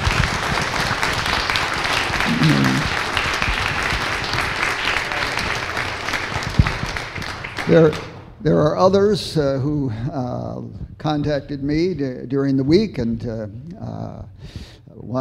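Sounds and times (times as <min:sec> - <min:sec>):
audience applause: 0:00.0 - 0:08.2
speech: 0:02.4 - 0:02.7, 0:07.7 - 0:15.1.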